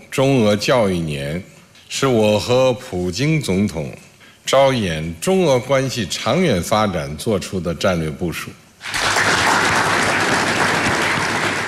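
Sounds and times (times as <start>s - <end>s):
speech: 0.2s - 9.4s
warm applause: 8.8s - 11.6s.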